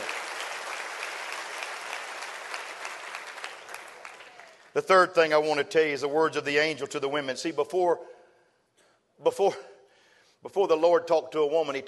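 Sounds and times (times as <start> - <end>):
audience clapping hands: 0.0 - 4.8
speech: 4.8 - 8.1, 9.2 - 9.7, 10.4 - 11.8.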